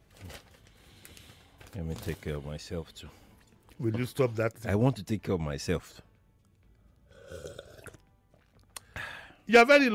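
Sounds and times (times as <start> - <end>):
speech: 1.8 - 3.2, 3.8 - 6.1, 9.5 - 9.9
person slurping tea: 7.1 - 8.0.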